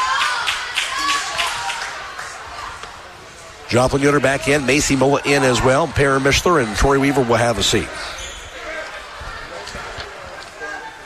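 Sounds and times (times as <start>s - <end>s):
scattered applause: 0.0s - 2.4s
home crowd cheering indoors: 0.0s - 11.0s
speech: 3.7s - 8.2s.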